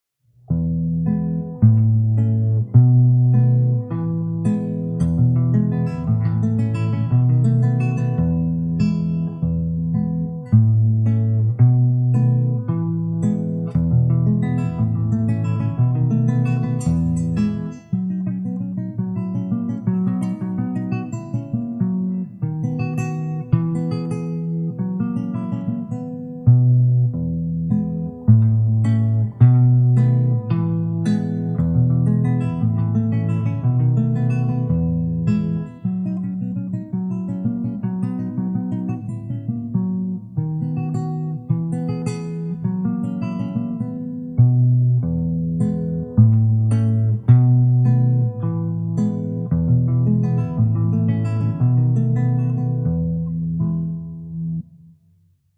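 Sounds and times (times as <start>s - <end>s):
acoustic guitar study: 0.3s - 55.5s.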